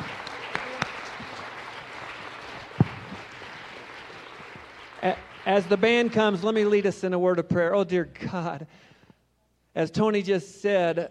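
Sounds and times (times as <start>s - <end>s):
audience applauding: 0.0s - 7.0s
speech: 5.0s - 8.9s, 9.8s - 11.0s.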